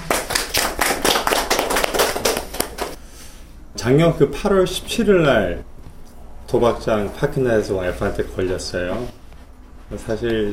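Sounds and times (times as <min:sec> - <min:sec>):
audience clapping: 0:00.0 - 0:03.0
speech: 0:03.8 - 0:05.7, 0:06.5 - 0:09.2, 0:09.9 - 0:10.5.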